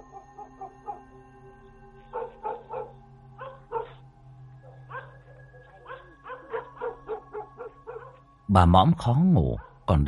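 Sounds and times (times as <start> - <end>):
two dogs barking loudly at night: 0.0 - 1.1, 2.0 - 8.3, 9.6 - 9.9
speech: 8.5 - 10.0.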